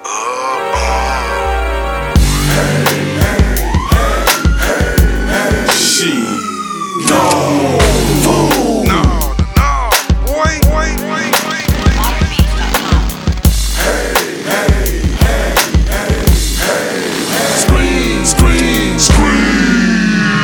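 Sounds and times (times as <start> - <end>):
voices chanting: 0.1 - 20.4.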